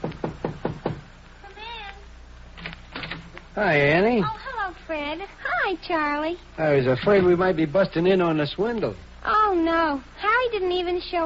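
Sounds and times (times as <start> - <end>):
knocking on an apartment door: 0.0 - 1.1
speech: 3.6 - 11.2.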